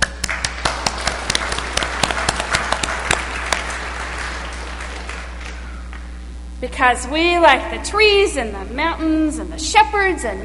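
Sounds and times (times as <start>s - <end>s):
people clapping their hands: 0.0s - 6.2s
speech: 6.6s - 10.4s.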